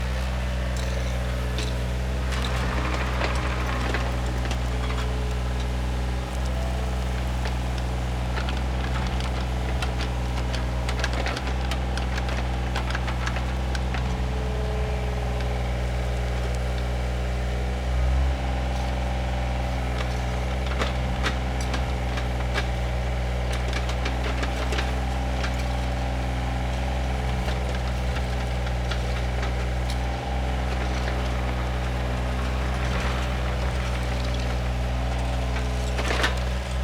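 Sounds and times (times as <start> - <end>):
construction site ambience: 0.0 - 36.8.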